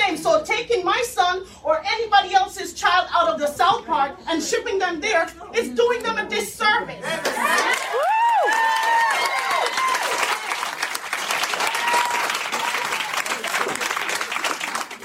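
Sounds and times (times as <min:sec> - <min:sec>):
speech: 0:00.6 - 0:07.8
enthusiastic audience applause: 0:07.2 - 0:15.0.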